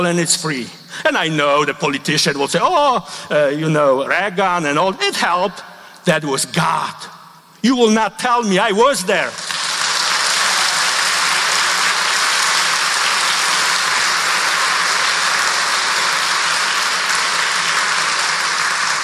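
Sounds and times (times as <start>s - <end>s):
speech: 0.0s - 9.5s
audience clapping: 9.2s - 19.0s.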